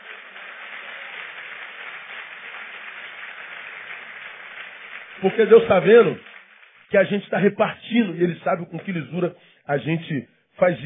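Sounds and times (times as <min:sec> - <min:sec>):
audience applauding: 0:00.0 - 0:07.5
speech: 0:05.2 - 0:06.3, 0:06.9 - 0:10.8.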